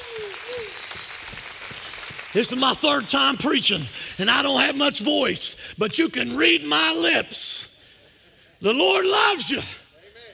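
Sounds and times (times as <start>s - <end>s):
audience hand clapping: 0.0s - 4.6s
speech: 2.3s - 7.7s, 8.6s - 9.8s.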